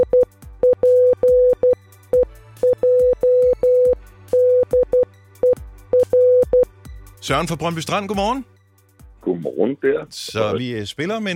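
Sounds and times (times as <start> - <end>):
Morse code beeps: 0.0 - 6.7
speech: 7.3 - 8.5, 9.3 - 11.3.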